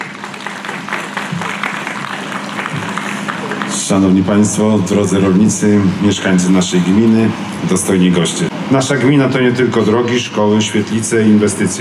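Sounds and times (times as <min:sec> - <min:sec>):
audience applause: 0:00.0 - 0:04.7
speech: 0:03.9 - 0:11.7.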